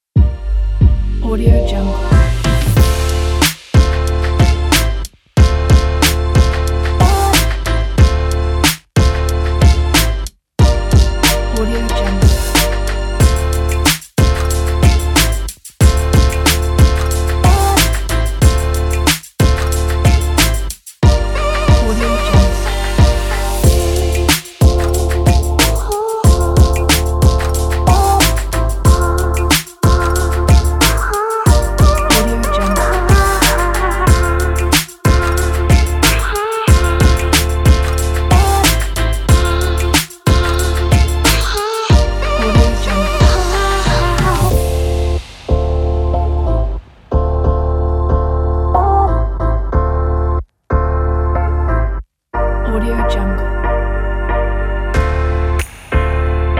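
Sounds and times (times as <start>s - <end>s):
hip hop music: 0.2s - 56.5s.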